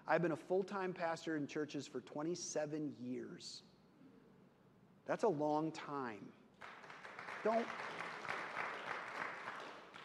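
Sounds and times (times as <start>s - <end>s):
speech: 0.1s - 3.7s, 5.1s - 6.7s, 7.4s - 8.0s
audience clapping: 6.5s - 10.0s.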